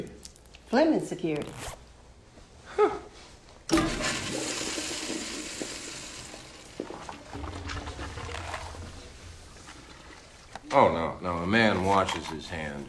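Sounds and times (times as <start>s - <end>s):
speech: 0.7s - 1.8s, 10.7s - 12.8s
toilet flushing: 3.7s - 10.6s.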